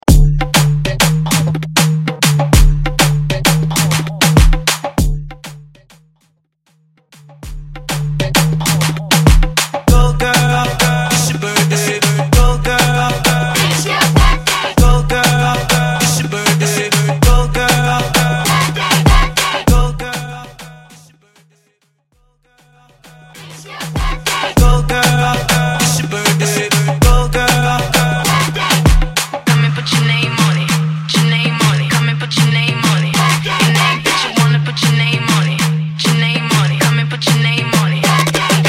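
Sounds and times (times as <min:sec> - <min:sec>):
moombahton remix: 0:00.0 - 0:05.8, 0:07.2 - 0:21.6, 0:22.6 - 0:38.6.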